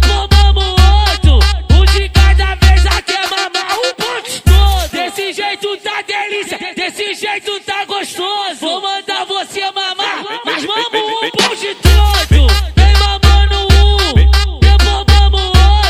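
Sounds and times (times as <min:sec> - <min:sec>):
funk music with heavy bass: 0:00.0 - 0:05.0, 0:11.2 - 0:15.8
laughter: 0:10.0 - 0:11.8.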